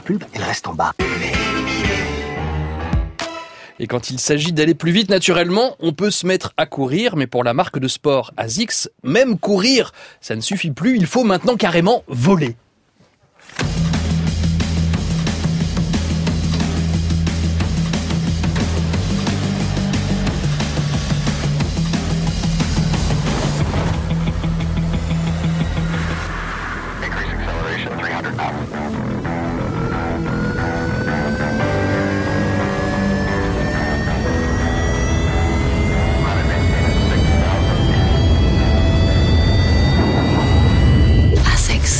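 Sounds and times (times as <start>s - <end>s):
speech: 0.1s - 2.1s, 3.8s - 12.6s
loud advertising music: 1.0s - 3.8s, 13.6s - 41.9s
steady low droning tones: 14.2s - 41.9s.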